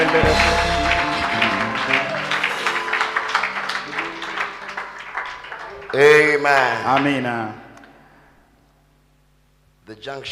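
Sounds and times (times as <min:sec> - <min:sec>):
audience clapping in praise: 0:00.0 - 0:07.6
speech: 0:00.1 - 0:00.8, 0:06.0 - 0:07.6, 0:09.9 - 0:10.2.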